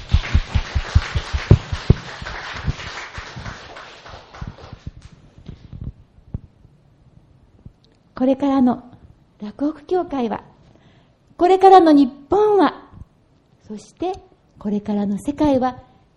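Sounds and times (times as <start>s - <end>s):
audience applause: 0.0s - 4.9s
speech: 8.2s - 10.5s, 11.4s - 12.7s, 13.7s - 16.1s.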